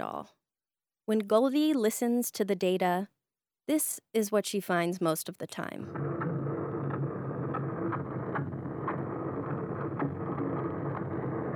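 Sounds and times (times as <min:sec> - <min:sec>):
speech: 0:00.0 - 0:00.4, 0:01.1 - 0:06.3
boat noise recorded underwater: 0:05.9 - 0:11.5.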